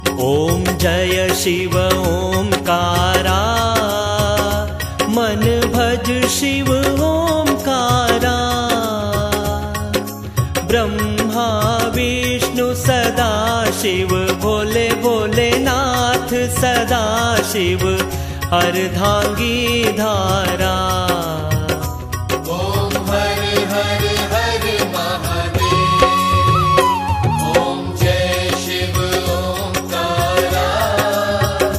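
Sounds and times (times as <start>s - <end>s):
devotional aarti ringtone: 0.0s - 31.7s.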